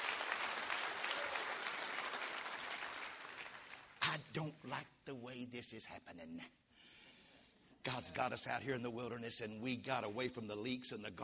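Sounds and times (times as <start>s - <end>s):
audience clapping hands: 0.0s - 4.2s
speech: 4.2s - 6.6s, 7.8s - 11.2s.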